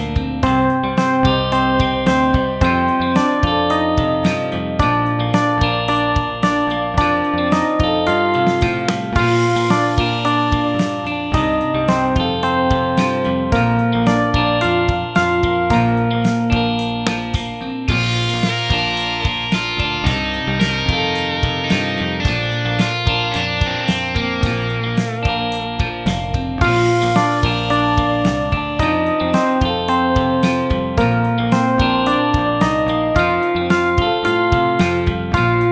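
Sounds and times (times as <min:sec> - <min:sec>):
music playback in B major: 0:00.0 - 0:35.7.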